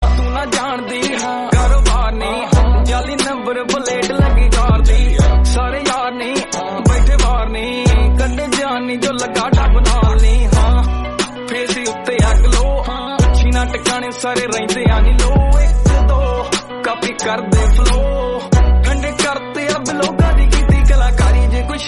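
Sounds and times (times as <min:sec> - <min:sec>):
song ringtone: 0:00.0 - 0:21.8.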